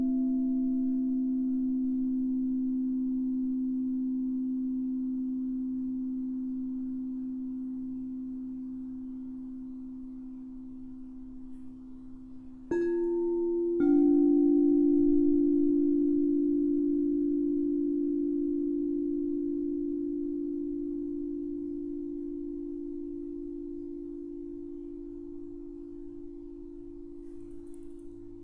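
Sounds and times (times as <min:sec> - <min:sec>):
crystal singing bowls humming: 0:00.0 - 0:28.4
soft crystal singing bowl strikes: 0:12.7 - 0:17.0.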